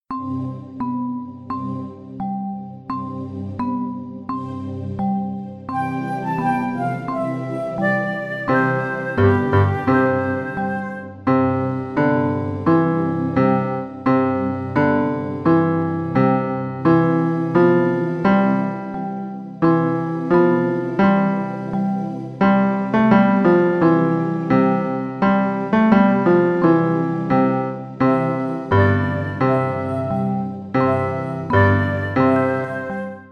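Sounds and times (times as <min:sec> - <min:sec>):
melody: 0:00.1 - 0:33.3.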